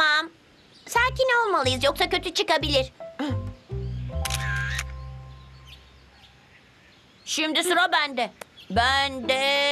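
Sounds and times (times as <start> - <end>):
speech: 1.2 - 3.4, 7.3 - 9.7
camera film advance motor whirring: 4.2 - 4.9
camera shutter clack: 4.2 - 5.0.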